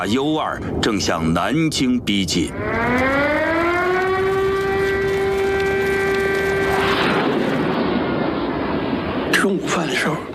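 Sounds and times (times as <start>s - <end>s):
speech: 0.0s - 3.4s, 9.5s - 10.3s
broad roaring rush of noise: 2.4s - 10.3s
air raid warning siren wailing: 2.5s - 9.2s.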